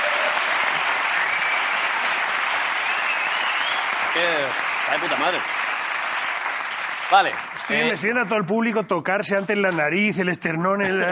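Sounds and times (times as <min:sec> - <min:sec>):
audience applause: 0:00.0 - 0:08.4
speech: 0:04.2 - 0:05.6, 0:07.1 - 0:11.0.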